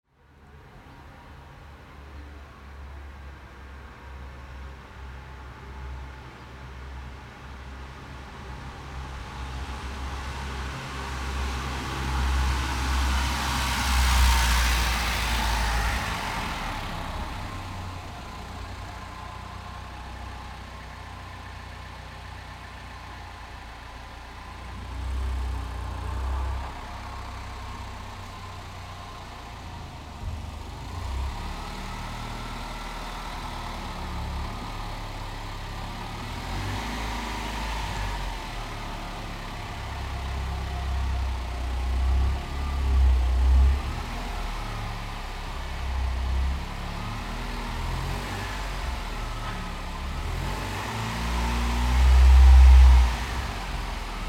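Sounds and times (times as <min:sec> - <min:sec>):
car arriving and parking: 0:00.2 - 0:54.2.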